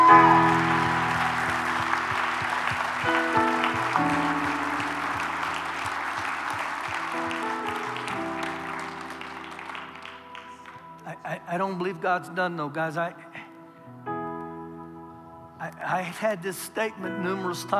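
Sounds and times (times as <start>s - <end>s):
audience clapping: 0.0s - 11.1s
organ or keyboard chords: 0.0s - 17.7s
speech: 11.6s - 13.2s, 15.9s - 17.7s.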